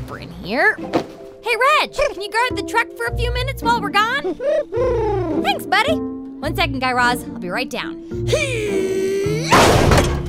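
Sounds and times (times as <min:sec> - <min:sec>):
speech: 0:00.1 - 0:09.0
door being kicked down: 0:09.5 - 0:10.2.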